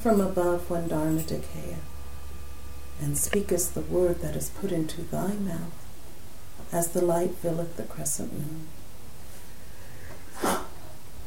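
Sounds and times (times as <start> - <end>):
speech: 0.0 - 1.9, 3.0 - 5.8, 6.7 - 8.8
steady hum: 0.0 - 11.2
sneeze during a devotional recitation: 10.3 - 10.8.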